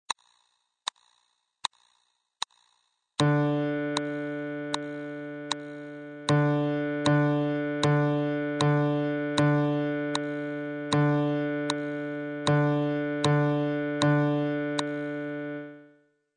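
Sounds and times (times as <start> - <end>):
rhythm beat: 3.2 - 15.6.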